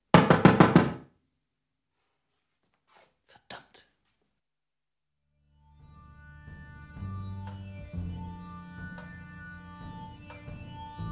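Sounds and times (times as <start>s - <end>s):
knocking on a door: 0.1s - 1.0s.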